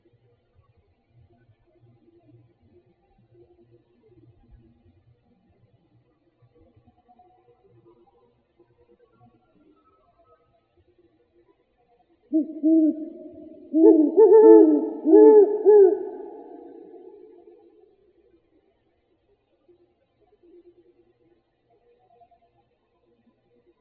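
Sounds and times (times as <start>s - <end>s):
owls: 12.4s - 17.6s.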